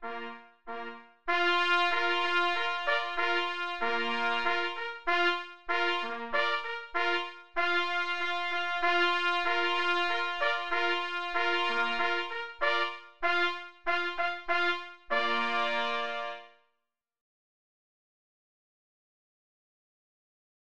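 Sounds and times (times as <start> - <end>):
minuet on homogeneous instruments: 0.1 - 16.5.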